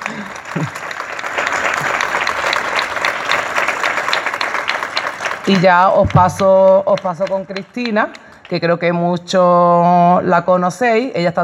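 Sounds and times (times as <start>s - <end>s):
audience applause: 0.0s - 8.5s
speech: 5.5s - 11.4s.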